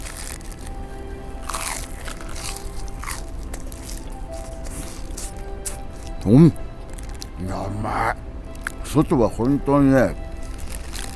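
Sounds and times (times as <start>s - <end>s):
biting into crispy fried shrimp toast: 0.0s - 6.3s, 6.9s - 7.4s, 8.6s - 8.9s, 10.4s - 11.1s
speech: 6.3s - 6.6s, 8.9s - 10.2s.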